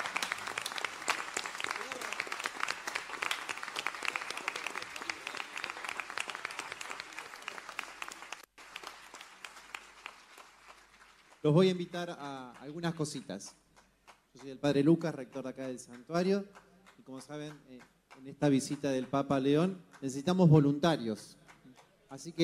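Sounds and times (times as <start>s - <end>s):
audience applause: 0.0s - 12.1s
speech: 11.4s - 13.6s, 14.4s - 21.4s, 22.1s - 22.4s.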